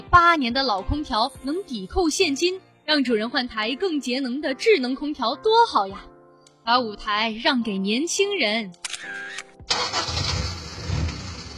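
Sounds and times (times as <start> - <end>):
speech: 0.2 - 10.0
old car starter whine: 9.7 - 11.5.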